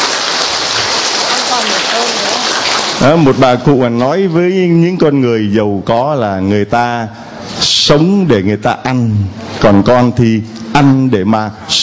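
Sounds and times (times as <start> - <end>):
loud applause: 0.0 - 3.4
speech: 3.0 - 11.8.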